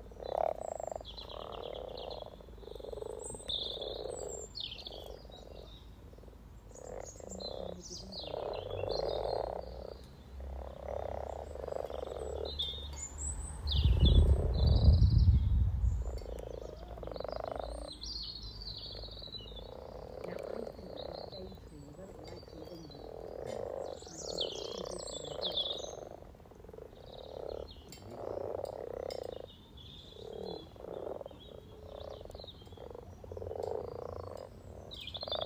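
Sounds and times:
birdsong: 0:00.0 - 0:35.4
frogs croaking: 0:00.0 - 0:35.4
loud low rumble: 0:13.6 - 0:16.5.

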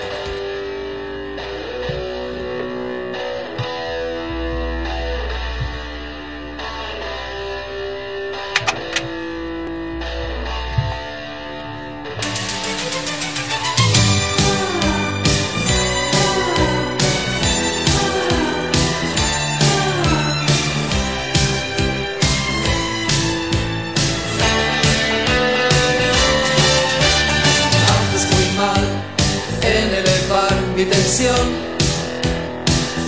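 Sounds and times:
synth and bass lines: 0:00.0 - 0:33.0
punchy drums: 0:12.2 - 0:33.0
upbeat 1980s Spanish pop song: 0:12.2 - 0:33.0.

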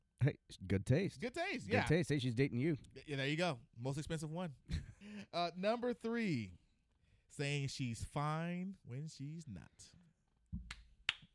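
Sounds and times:
speech: 0:00.2 - 0:06.6, 0:07.3 - 0:10.0
hand clapping: 0:10.6 - 0:11.3.

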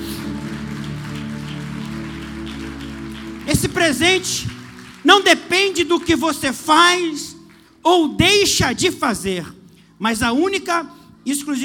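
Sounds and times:
audience clapping: 0:00.0 - 0:07.8
sustained low musical tones: 0:00.0 - 0:08.4
speech: 0:03.6 - 0:11.6.

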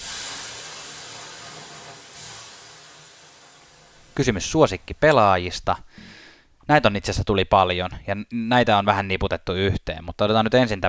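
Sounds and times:
steam hissing from water thrown on hot sauna stones: 0:00.0 - 0:04.2
speech: 0:04.2 - 0:06.1, 0:06.7 - 0:10.8.

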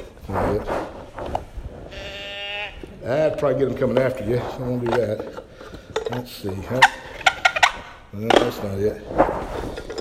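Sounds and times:
speech: 0:00.3 - 0:00.9, 0:03.0 - 0:07.0, 0:08.1 - 0:09.8
deer call bleat: 0:01.9 - 0:03.0.

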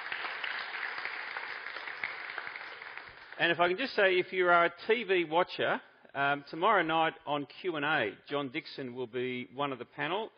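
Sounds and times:
audience clapping: 0:00.0 - 0:03.9
speech: 0:03.4 - 0:10.3.

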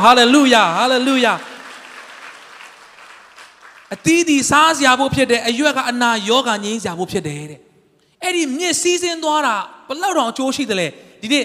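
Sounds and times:
speech: 0:00.0 - 0:01.5, 0:03.9 - 0:07.6, 0:08.2 - 0:11.4
congregation clapping in praise during a church service: 0:00.0 - 0:05.0.

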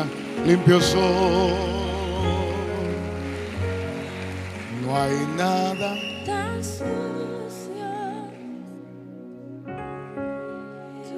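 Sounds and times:
audience applause: 0:00.0 - 0:06.6
speech: 0:00.4 - 0:02.4, 0:04.9 - 0:07.4.

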